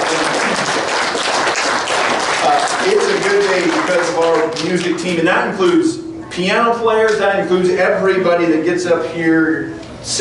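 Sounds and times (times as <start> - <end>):
crowd applause: 0.0 - 4.9
speech: 2.9 - 10.2.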